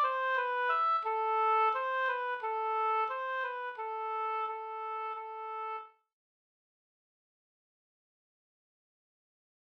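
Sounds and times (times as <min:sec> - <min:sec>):
oboe: 0:00.0 - 0:06.0.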